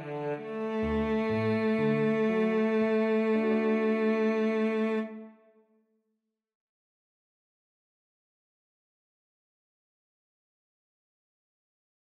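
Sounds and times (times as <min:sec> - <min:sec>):
cello duet: 0:00.0 - 0:05.5.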